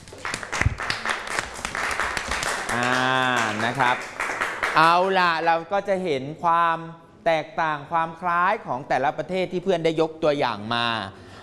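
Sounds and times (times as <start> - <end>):
classroom applause: 0.0 - 5.2
speech: 2.8 - 11.2.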